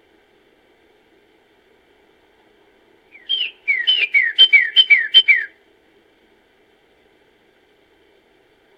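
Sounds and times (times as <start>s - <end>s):
bird calling: 3.1s - 5.5s.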